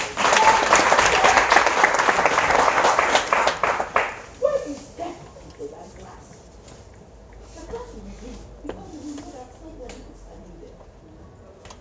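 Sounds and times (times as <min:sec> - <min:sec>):
audience clapping: 0:00.0 - 0:04.4.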